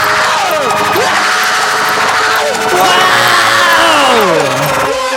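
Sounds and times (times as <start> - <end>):
audience screaming: 0.0 - 5.0.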